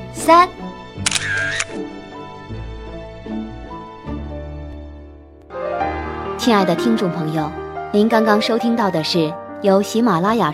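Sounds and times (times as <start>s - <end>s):
speech: 0.2s - 0.6s, 1.3s - 2.0s, 6.4s - 10.5s
camera shutter click: 1.0s - 1.8s
sustained tones: 5.5s - 8.5s.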